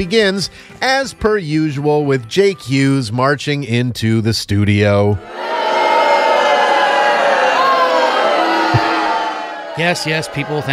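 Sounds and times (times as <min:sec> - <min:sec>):
speech: 0:00.0 - 0:05.6, 0:09.8 - 0:10.7
studio audience booing: 0:05.2 - 0:10.7.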